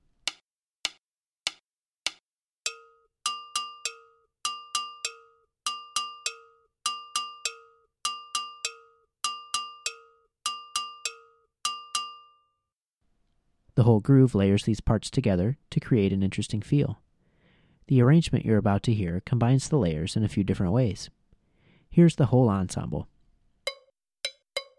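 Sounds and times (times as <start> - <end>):
gankogui bell pattern with muted low tones: 2.7 - 12.5
speech: 13.8 - 17.0, 17.9 - 21.2, 21.9 - 23.1.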